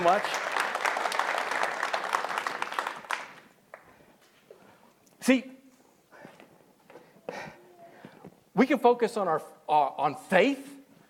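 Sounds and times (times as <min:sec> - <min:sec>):
speech: 0:00.0 - 0:00.5, 0:05.3 - 0:05.6, 0:08.6 - 0:10.8
audience applause: 0:00.0 - 0:03.9.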